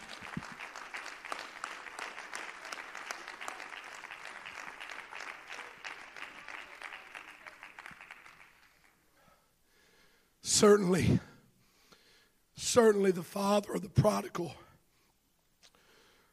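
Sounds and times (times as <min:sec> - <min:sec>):
audience clapping hands: 0:00.0 - 0:09.1
speech: 0:10.6 - 0:11.3, 0:12.7 - 0:14.6.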